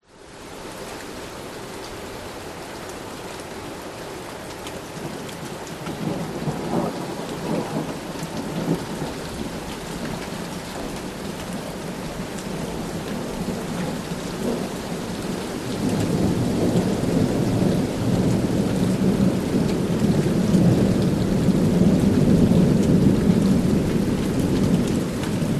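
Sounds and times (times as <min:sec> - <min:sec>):
light rain: 0:00.0 - 0:25.5
wind: 0:00.0 - 0:25.5
distant thunder rumble: 0:05.8 - 0:25.5.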